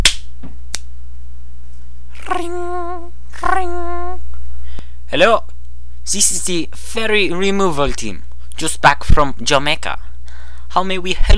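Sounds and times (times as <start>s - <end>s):
finger snap: 0.0s - 0.9s
speech: 2.3s - 4.1s, 5.1s - 5.5s, 6.1s - 10.0s, 10.7s - 11.3s.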